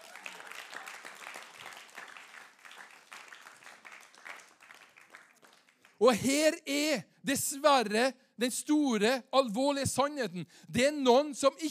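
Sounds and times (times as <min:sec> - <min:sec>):
audience applauding: 0:00.0 - 0:06.2
speech: 0:06.0 - 0:11.6.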